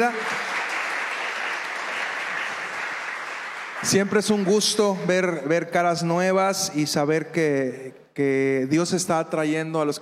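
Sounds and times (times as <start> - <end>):
speech: 0.0 - 0.3, 3.8 - 9.9
audience applause: 0.0 - 5.0.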